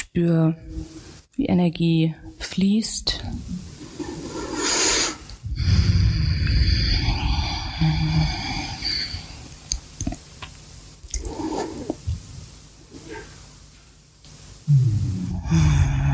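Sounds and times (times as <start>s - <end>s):
speech: 0.2s - 0.9s, 1.5s - 3.6s
deep yoga breathing in child's pose: 4.5s - 9.4s, 14.7s - 16.1s.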